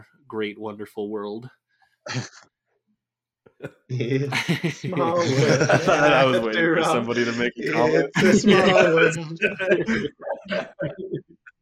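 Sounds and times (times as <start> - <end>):
speech: 0.3 - 2.5, 3.6 - 11.2
laughter: 3.7 - 11.6
person coughing: 7.8 - 11.1.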